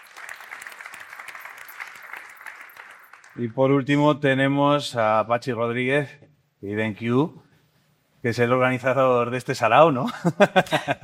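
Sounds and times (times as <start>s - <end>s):
audience applause: 0.0s - 3.4s
speech: 3.4s - 7.4s, 8.2s - 11.0s.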